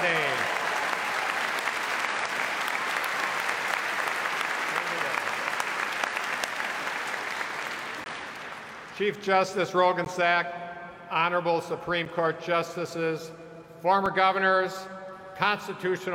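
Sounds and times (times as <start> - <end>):
audience applause: 0.0 - 8.9
speech: 9.0 - 16.1.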